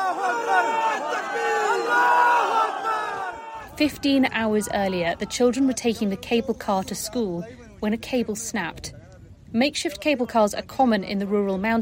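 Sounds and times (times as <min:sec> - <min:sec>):
crowd shouting God is great: 0:00.0 - 0:06.3
speech: 0:03.8 - 0:11.7.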